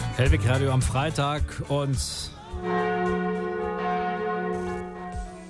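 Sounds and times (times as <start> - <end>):
speech: 0.2 - 3.4
wedding church bells ringing: 2.6 - 5.4.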